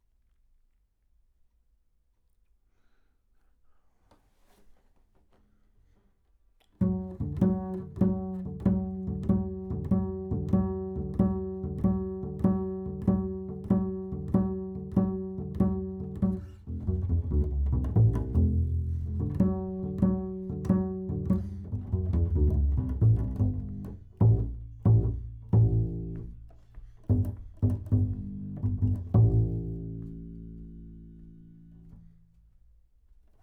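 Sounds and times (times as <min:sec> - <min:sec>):
bass: 0:06.7 - 0:33.4.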